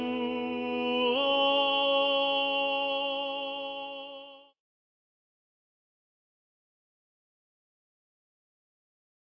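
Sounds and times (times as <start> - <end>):
tenor voice singing: 0.0 - 4.5.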